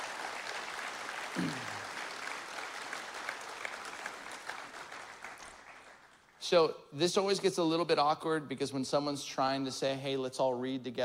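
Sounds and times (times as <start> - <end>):
audience clapping: 0.0 - 6.4
speech: 6.5 - 11.0.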